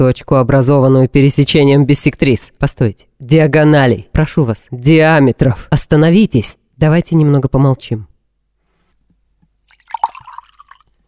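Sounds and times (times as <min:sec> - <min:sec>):
speech: 0:00.0 - 0:08.1
water being poured for drinking: 0:09.4 - 0:11.0.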